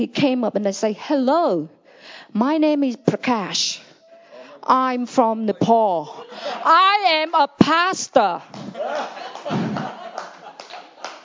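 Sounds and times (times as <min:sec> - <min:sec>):
speech: 0:00.0 - 0:03.8, 0:04.6 - 0:09.6
laughter: 0:05.3 - 0:07.4, 0:08.4 - 0:11.2
audience clapping: 0:08.4 - 0:11.2.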